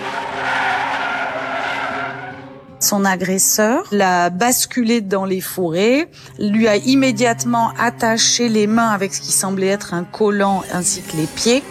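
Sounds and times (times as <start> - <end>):
car braking to a stop: 0.0 - 2.9
speech: 2.8 - 11.6.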